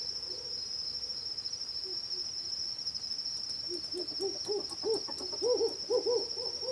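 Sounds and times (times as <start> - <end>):
Hume's owl compound hooting in territorial confrontation: 3.5 - 6.5.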